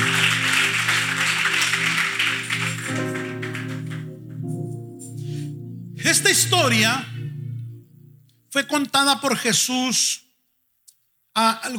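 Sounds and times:
audience clapping: 0.0s - 4.4s
sustained keyboard chords: 0.0s - 8.7s
speech: 6.1s - 7.2s, 8.6s - 10.2s, 11.4s - 11.7s.

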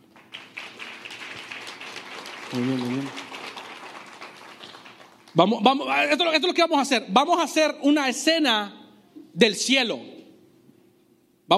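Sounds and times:
audience applause: 0.0s - 5.4s
speech: 2.5s - 3.2s, 5.3s - 8.8s, 9.4s - 10.2s.

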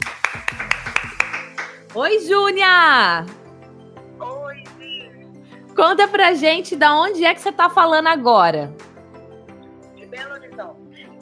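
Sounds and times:
applause: 0.0s - 2.0s
speech: 2.0s - 3.4s, 5.8s - 8.9s.

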